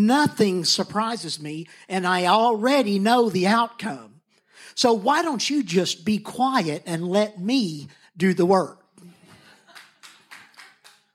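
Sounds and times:
speech: 0.0s - 8.8s
hands clapping: 9.6s - 11.1s.

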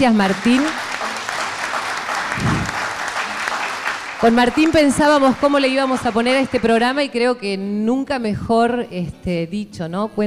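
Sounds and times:
speech: 0.0s - 0.8s, 4.2s - 10.2s
audience applause: 0.0s - 7.1s.

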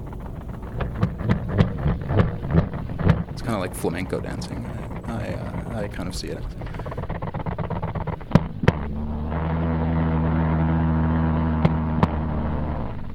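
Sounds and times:
sharp clicks and snaps: 0.0s - 8.9s
jumping spider vibration signals on nylon: 0.0s - 13.1s
speech: 3.4s - 7.0s.

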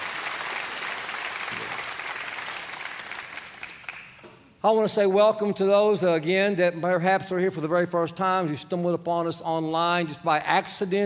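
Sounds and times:
audience clapping: 0.0s - 4.5s
speech: 4.6s - 11.0s.

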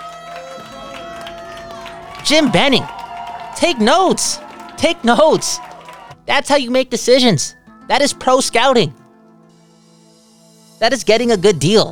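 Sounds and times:
canned applause sound effect: 0.0s - 6.3s
speech: 2.3s - 3.0s, 3.6s - 5.7s, 6.3s - 9.0s, 10.8s - 11.9s.

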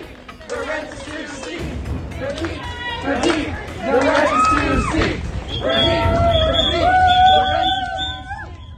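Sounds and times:
protesting students clapping: 0.0s - 8.7s
protesting students shouting and chanting: 0.0s - 8.7s
protesting students blowing shrill whistles: 5.4s - 8.7s.

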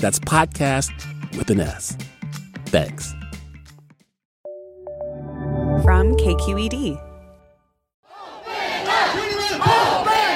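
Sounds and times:
speech: 0.0s - 2.1s, 2.7s - 3.2s, 5.8s - 7.1s
crowd shouting in Fresno for businesses to reopen: 8.1s - 10.3s.

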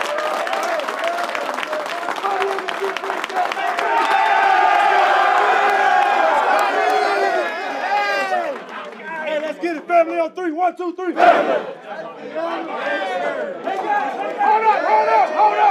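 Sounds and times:
team clapping and cheering: 0.0s - 9.7s, 13.6s - 15.6s
speech: 10.4s - 15.6s.

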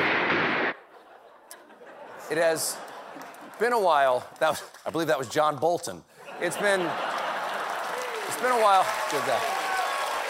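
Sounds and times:
rapid gunshots fired at someone's feet: 0.0s - 0.8s
laughter: 0.8s - 3.9s, 4.9s - 8.8s
speech: 2.3s - 7.1s, 8.4s - 9.5s.

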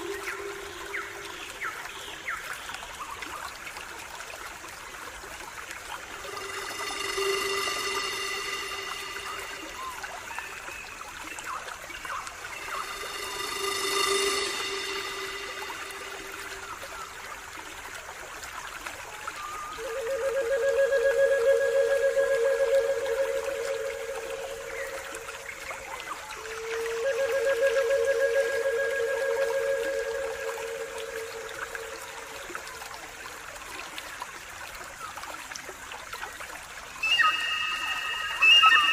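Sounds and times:
pan flute melodies: 0.0s - 1.9s, 5.8s - 18.0s, 19.1s - 33.0s, 37.0s - 38.9s
soft steady flowing water: 0.0s - 38.9s.

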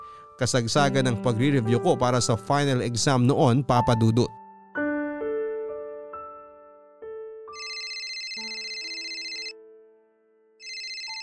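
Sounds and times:
speech: 0.4s - 4.4s
phone ringtone with electronic melody and buzzy ring: 7.6s - 9.6s, 10.6s - 11.2s.

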